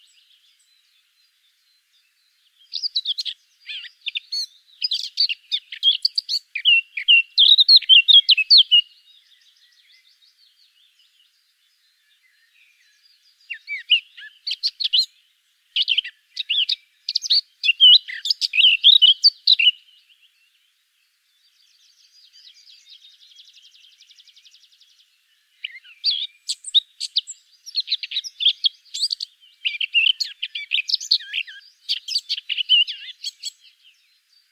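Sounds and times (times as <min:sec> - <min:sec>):
Eurasian blackcap singing: 0:00.0 - 0:20.6, 0:21.4 - 0:34.5.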